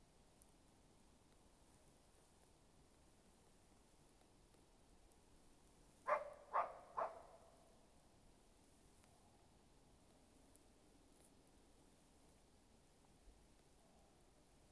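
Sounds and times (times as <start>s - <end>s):
animal calls: 6.1s - 7.4s.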